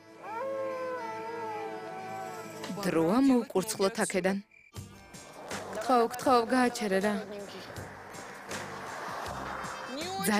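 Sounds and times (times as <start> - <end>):
coyote howling at night: 0.0 - 2.7
speech: 2.8 - 4.5, 5.9 - 7.4.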